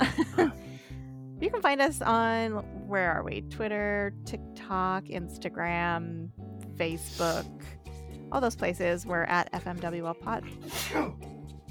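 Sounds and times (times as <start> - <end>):
speech: 1.4 - 11.3
person sneezing: 7.1 - 7.6, 10.6 - 11.2.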